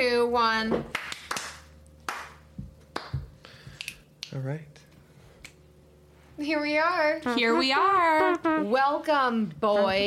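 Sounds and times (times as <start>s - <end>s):
speech: 0.3s - 1.0s, 4.4s - 4.8s, 6.4s - 10.0s
single hand clap: 0.8s - 4.3s.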